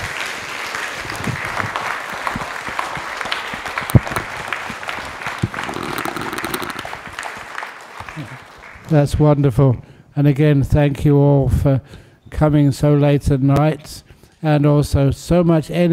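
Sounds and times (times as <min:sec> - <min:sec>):
audience applause for lion dance troupe: 0:00.0 - 0:08.9
speech: 0:08.9 - 0:15.9.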